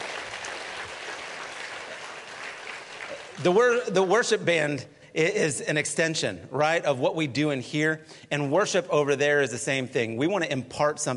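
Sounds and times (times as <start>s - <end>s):
audience round of applause: 0.0s - 3.8s
speech: 3.4s - 11.1s.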